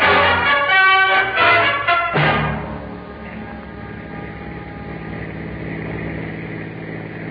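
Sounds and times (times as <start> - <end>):
car driving: 0.0 - 7.2.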